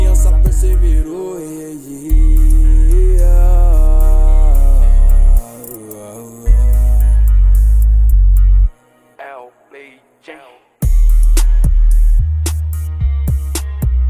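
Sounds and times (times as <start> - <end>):
deep bass: 0.0 - 1.1, 2.1 - 5.4, 6.5 - 8.7, 10.8 - 14.0.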